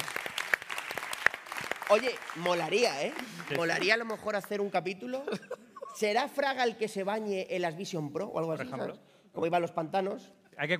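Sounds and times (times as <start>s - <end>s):
applause: 0.0s - 4.8s
speech: 1.9s - 10.7s.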